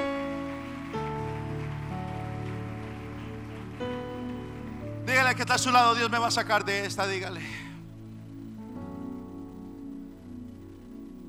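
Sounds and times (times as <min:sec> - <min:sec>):
audience clapping: 0:00.0 - 0:07.6
speech: 0:05.3 - 0:07.6.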